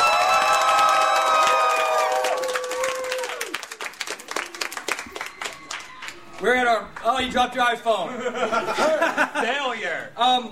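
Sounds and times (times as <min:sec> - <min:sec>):
audience applause: 0:00.0 - 0:06.5
speech: 0:06.4 - 0:10.5
laughter: 0:08.0 - 0:09.7.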